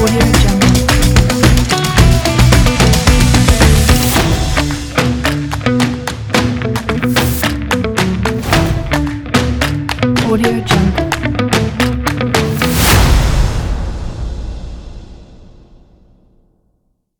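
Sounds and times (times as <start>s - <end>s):
funk stomp music: 0.0s - 13.1s.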